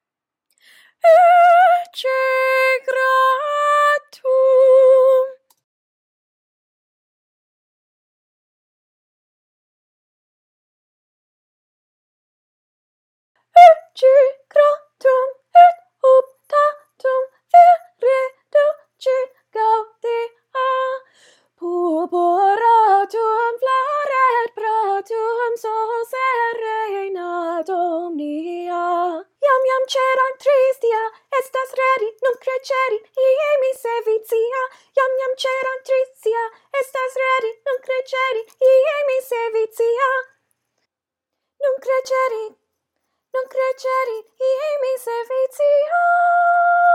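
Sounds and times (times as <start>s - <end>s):
women singing: 1.0s - 5.4s, 13.6s - 40.4s, 41.6s - 42.6s, 43.4s - 46.9s.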